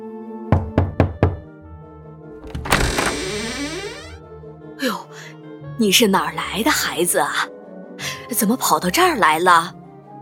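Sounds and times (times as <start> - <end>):
knocking on a door: 0.5 - 1.5
rough rattling: 2.4 - 4.2
speech: 5.8 - 7.5, 8.3 - 9.8.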